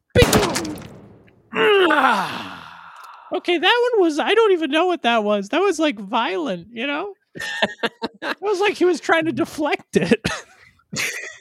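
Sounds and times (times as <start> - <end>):
gunshot in a video game: 0.2 - 1.3
groaning voice-like sound: 1.5 - 3.3
speech: 3.4 - 11.3
laughter: 7.4 - 8.8.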